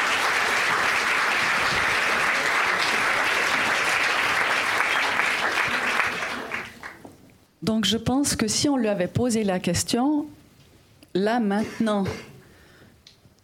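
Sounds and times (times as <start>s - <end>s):
crowd applauding: 0.0s - 7.1s
speech: 7.6s - 10.4s, 11.1s - 12.3s.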